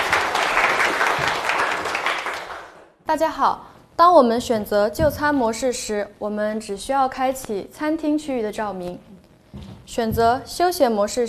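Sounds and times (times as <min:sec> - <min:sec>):
classroom applause: 0:00.0 - 0:02.9
speech: 0:03.1 - 0:09.1, 0:09.9 - 0:11.2.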